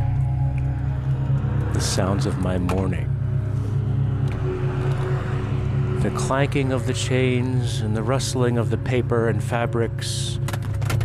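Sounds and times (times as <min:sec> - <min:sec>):
car engine rumbling while driving: 0:00.0 - 0:11.0
road noise: 0:00.6 - 0:08.7
speech: 0:01.8 - 0:03.1, 0:06.0 - 0:10.6.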